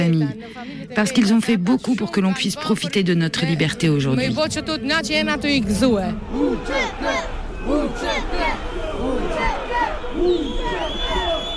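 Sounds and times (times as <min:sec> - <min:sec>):
speech: 0:00.0 - 0:08.8
protest crowd shouting in indignation: 0:06.2 - 0:11.5.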